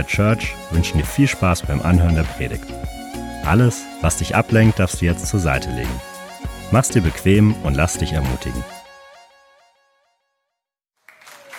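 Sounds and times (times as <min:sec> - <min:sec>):
speech: 0:00.0 - 0:06.1, 0:06.7 - 0:08.8
audience applause: 0:11.1 - 0:11.5.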